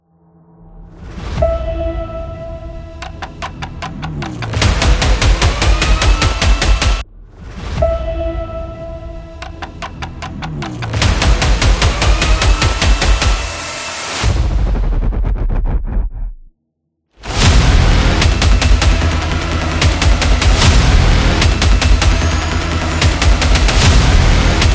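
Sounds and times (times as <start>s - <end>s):
epic intro music: 0.1s - 16.3s, 17.2s - 24.7s.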